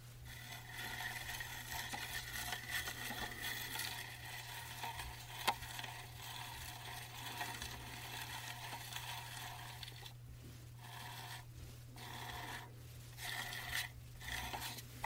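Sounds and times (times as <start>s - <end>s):
trackball mouse rolling: 0.2s - 10.2s, 10.8s - 15.0s.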